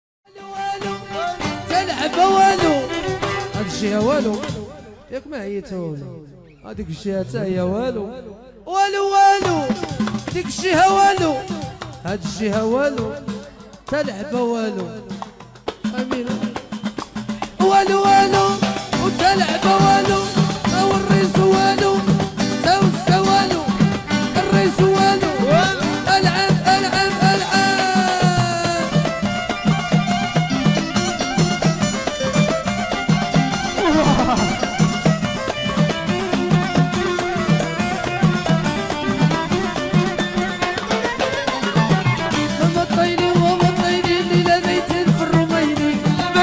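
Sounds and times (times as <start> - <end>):
chaabi music ambience: 0.3 - 6.9, 7.6 - 46.4
laughter: 33.7 - 34.8.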